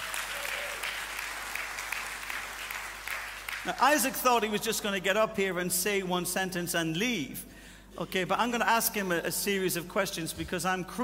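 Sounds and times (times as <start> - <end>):
church congregation applauding at a Sunday service: 0.0 - 4.4
speech: 3.6 - 11.0.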